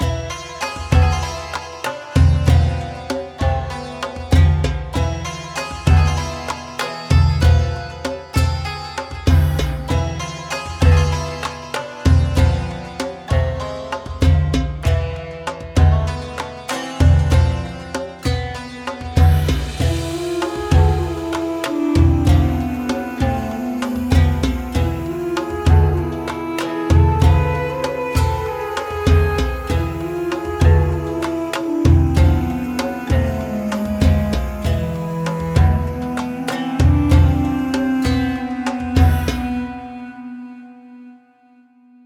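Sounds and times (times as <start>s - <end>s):
background music: 0.0s - 41.6s.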